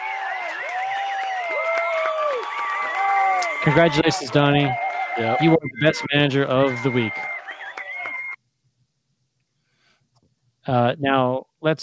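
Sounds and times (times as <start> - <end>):
round of applause sound effect: 0.0 - 5.2, 6.2 - 8.4
sustained wavering whistle-like tones: 2.8 - 8.4
speech: 3.6 - 7.3, 10.6 - 11.8.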